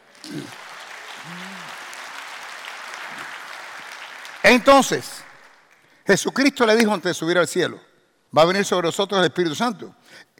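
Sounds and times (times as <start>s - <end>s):
audience applause: 0.0s - 4.6s
speech: 4.5s - 5.2s, 6.1s - 10.2s.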